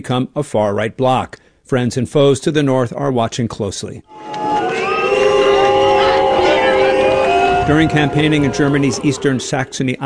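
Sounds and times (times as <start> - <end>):
speech: 0.0 - 4.5, 7.7 - 10.0
crowd booing: 4.1 - 10.0.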